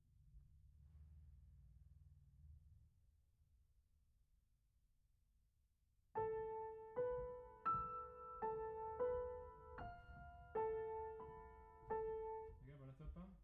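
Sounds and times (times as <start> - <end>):
piano: 6.2 - 13.4.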